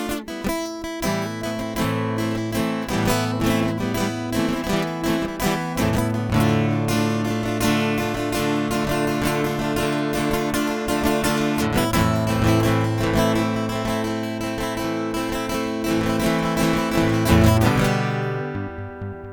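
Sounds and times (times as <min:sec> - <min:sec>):
dirty guitar loop: 0:00.0 - 0:19.3.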